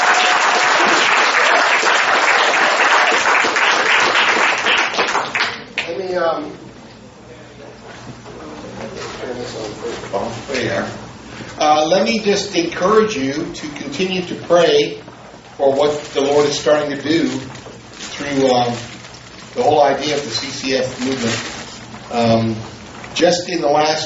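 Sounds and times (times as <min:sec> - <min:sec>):
audience applause: 0:00.0 - 0:05.9
speech: 0:10.1 - 0:17.6, 0:18.2 - 0:18.9, 0:19.6 - 0:21.5, 0:22.1 - 0:24.0.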